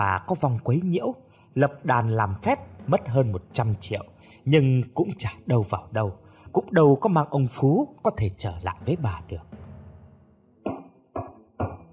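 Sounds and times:
speech: 0.0s - 9.6s
knocking on a bedroom door: 10.6s - 11.9s.

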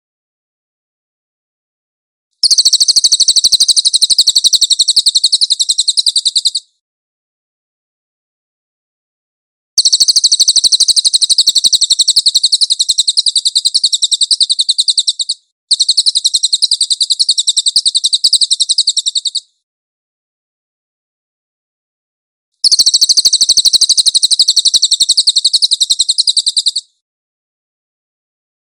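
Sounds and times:
cililin trilling song: 2.4s - 6.7s, 9.8s - 19.5s, 22.6s - 26.9s.

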